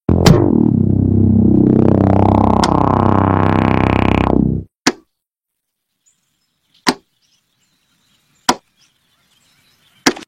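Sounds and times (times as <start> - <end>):
distorted loud earrape intro: 0.1 - 4.7.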